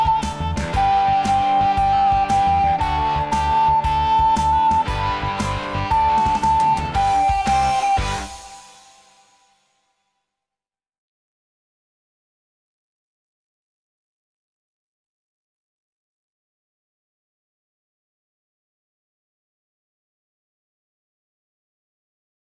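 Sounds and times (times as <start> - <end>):
recorder accompaniment: 0.0 - 9.6
flute playing: 0.0 - 9.7.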